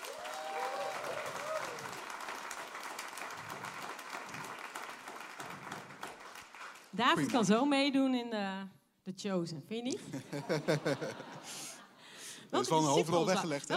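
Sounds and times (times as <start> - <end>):
audience applause: 0.0 - 7.4
speech: 7.0 - 11.6, 12.5 - 13.7
laughter: 10.0 - 12.0, 12.6 - 13.7.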